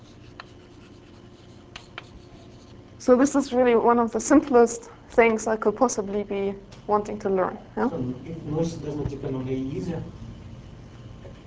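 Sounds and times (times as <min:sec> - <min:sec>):
writing on a board during a lecture: 0:00.0 - 0:02.8
speech: 0:03.0 - 0:10.2.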